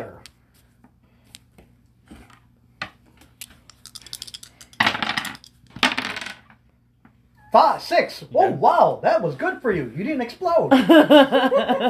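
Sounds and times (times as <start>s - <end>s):
dice clattering across a hard tabletop: 3.7s - 6.6s
speech: 7.6s - 11.8s
laughter: 10.7s - 11.8s.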